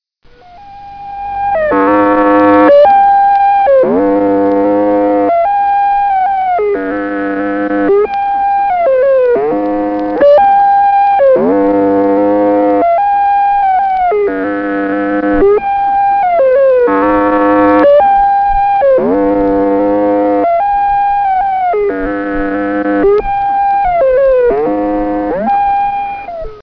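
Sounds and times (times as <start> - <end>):
moonquake rumble: 0.2 - 26.6.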